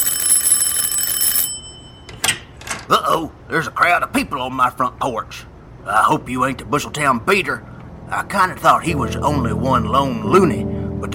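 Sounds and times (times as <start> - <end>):
metallic electric doorbell ringing: 0.0 - 2.6
speech: 2.9 - 11.1.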